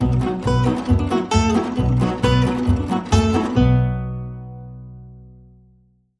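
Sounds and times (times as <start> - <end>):
fast blues swing music: 0.0 - 4.3.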